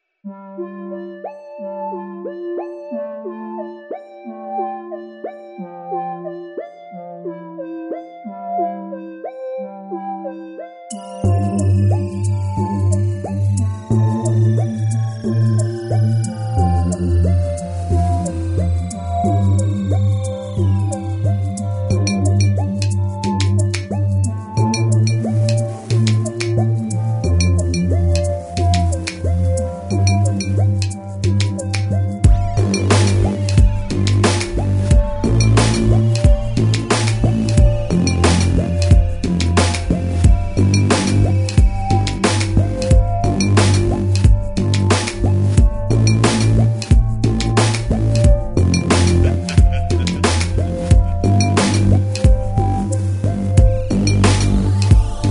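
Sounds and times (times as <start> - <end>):
ambient music: 0.2 - 55.3
laughter: 49.1 - 51.8.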